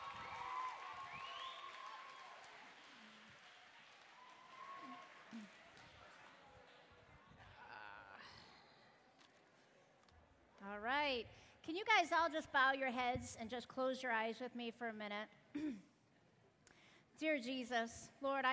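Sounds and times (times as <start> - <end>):
voices cheering: 0.0 - 5.6
audience applause: 0.0 - 6.6
speech: 5.3 - 5.6, 11.1 - 15.9, 17.2 - 18.5.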